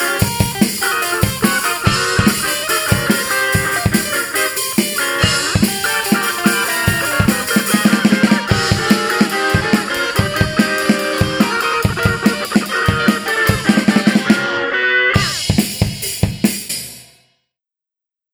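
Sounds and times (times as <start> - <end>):
background music bass: 0.0 - 15.5.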